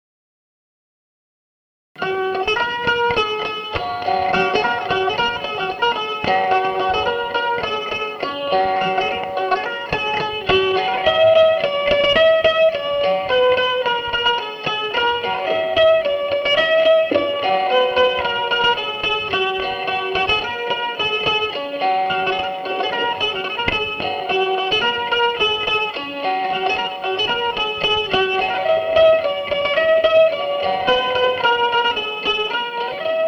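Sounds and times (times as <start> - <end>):
polka solo on epinette: 2.0 - 33.2.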